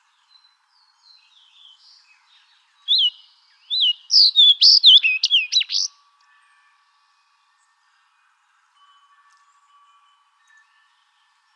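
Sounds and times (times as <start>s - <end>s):
Fox sparrow song: 0.0s - 6.0s.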